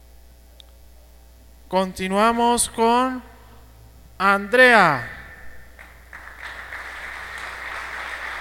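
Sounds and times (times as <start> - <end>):
speech: 1.7 - 3.3, 4.2 - 5.2
audience applause for a person being honoured: 5.8 - 8.4.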